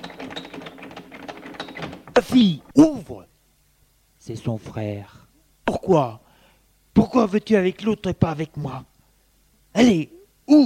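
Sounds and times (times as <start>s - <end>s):
door knob being turned and jiggled: 0.0s - 2.3s
speech: 2.2s - 3.3s, 4.3s - 5.2s, 5.8s - 6.2s, 7.1s - 8.9s, 9.8s - 10.6s.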